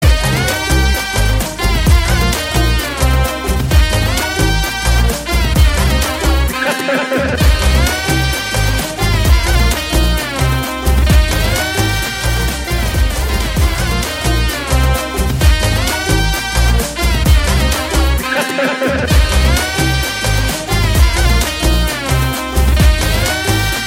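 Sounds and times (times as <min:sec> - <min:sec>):
background music: 0:00.0 - 0:23.8
laughter: 0:06.4 - 0:08.2, 0:18.2 - 0:19.8.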